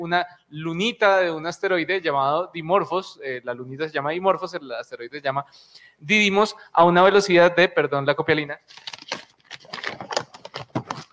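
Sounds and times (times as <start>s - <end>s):
speech: 0.0s - 8.9s
paper rustling near the microphone: 8.7s - 11.1s.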